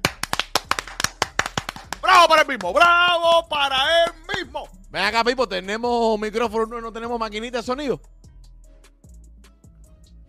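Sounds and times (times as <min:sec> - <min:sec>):
applause: 0:00.0 - 0:02.8
speech: 0:02.2 - 0:08.1.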